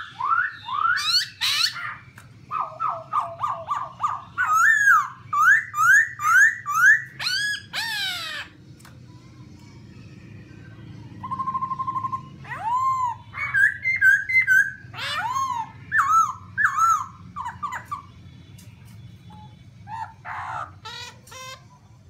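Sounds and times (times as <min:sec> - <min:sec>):
Black-throated laughingthrush whistling song: 0:00.0 - 0:08.4, 0:11.2 - 0:18.3.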